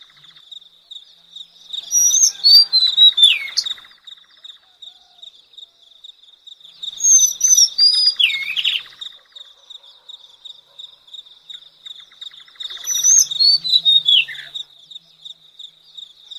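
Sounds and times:
Madagascar magpie-robin whistled slurs and chirps: 1.9 - 3.8, 7.0 - 8.9, 12.8 - 14.6.

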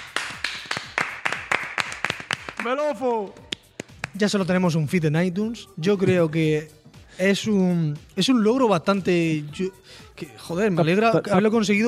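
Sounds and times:
hand claps: 0.0 - 4.4
speech: 2.6 - 3.4, 4.2 - 11.8.

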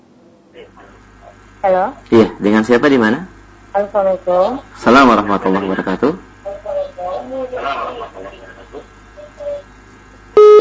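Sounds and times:
talk over a telephone call-in line: 0.5 - 2.6, 3.8 - 9.8
speech: 0.6 - 6.2
telephone line electronic beep tone: 10.4 - 10.5.

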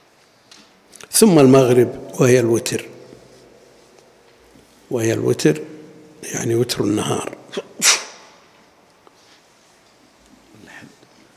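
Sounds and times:
speech: 1.2 - 3.0, 4.9 - 7.6
person sneezing: 7.5 - 8.3.

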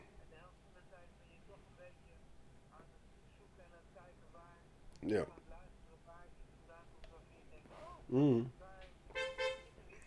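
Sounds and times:
speech: 5.0 - 5.4, 8.1 - 8.6
car horn honking: 9.2 - 9.8.

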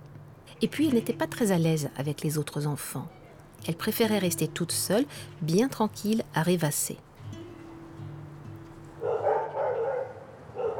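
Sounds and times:
speech: 0.6 - 7.1
large dogs barking: 9.0 - 10.7.

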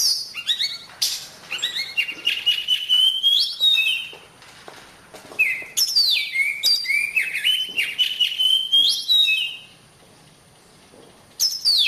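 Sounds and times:
Oriental magpie-robin singing whistled and scratchy notes: 0.0 - 4.2, 5.4 - 9.8, 11.4 - 11.8.

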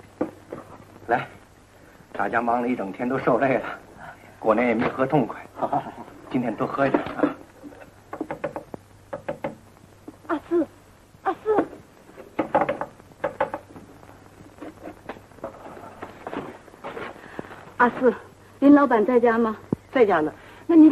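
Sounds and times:
faint low hum: 0.0 - 20.9
speech: 1.1 - 1.4, 2.2 - 3.8, 4.4 - 7.2, 17.8 - 20.9
knocking on a door by two visiting women: 8.1 - 9.6, 12.4 - 13.8.

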